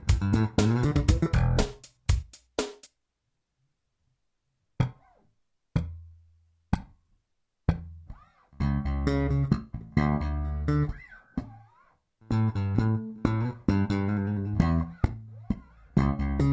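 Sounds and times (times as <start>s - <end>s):
bass guitar double thumb in E: 0.0s - 1.8s, 7.7s - 16.5s.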